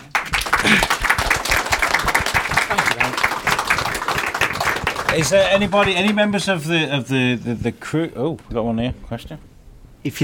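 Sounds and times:
crowd applause: 0:00.0 - 0:06.2
speech: 0:05.2 - 0:10.2.

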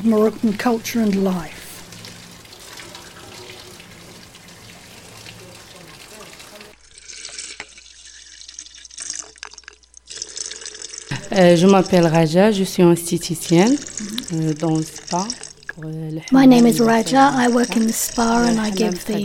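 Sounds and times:
speech: 0:00.0 - 0:01.6, 0:11.4 - 0:19.2
water running in a hammam: 0:00.0 - 0:06.8, 0:11.3 - 0:19.2
water drips, splashes and trickles in a hammam: 0:00.0 - 0:19.2.

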